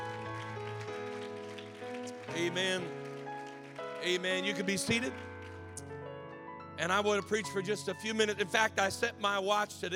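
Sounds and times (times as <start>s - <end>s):
audience hand clap of praise: 0.0s - 6.0s
speech: 2.4s - 3.0s, 4.0s - 5.3s, 6.8s - 9.9s.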